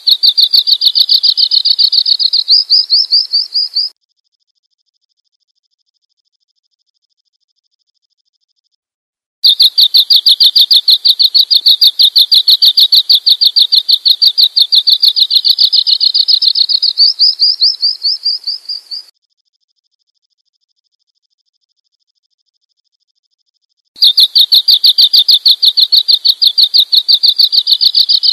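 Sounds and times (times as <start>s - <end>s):
bird chirping: 0.0s - 4.0s, 9.4s - 19.1s, 24.0s - 28.3s.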